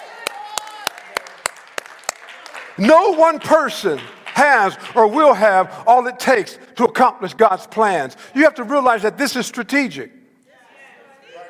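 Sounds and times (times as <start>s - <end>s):
church congregation clapping: 0.0s - 6.5s
speech: 2.8s - 10.2s.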